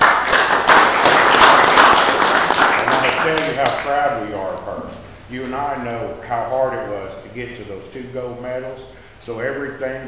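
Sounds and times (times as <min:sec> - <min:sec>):
audience applause honouring a young two-time state champion: 0:00.0 - 0:03.8
speech: 0:03.9 - 0:10.0.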